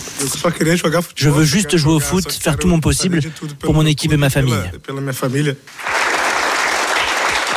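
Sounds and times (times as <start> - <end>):
speech: 0.4 - 5.9
journalists applauding in press room: 5.7 - 7.5.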